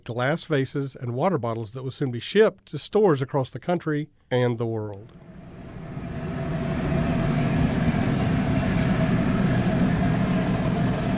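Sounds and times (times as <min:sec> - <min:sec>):
speech: 0:00.0 - 0:05.3
natural gas roaring in glass furnaces: 0:05.0 - 0:11.1.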